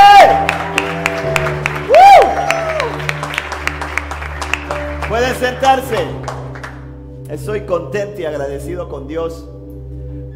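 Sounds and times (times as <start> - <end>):
loud audience applause: 0.0 - 6.8
speech: 5.4 - 6.3, 7.3 - 9.5.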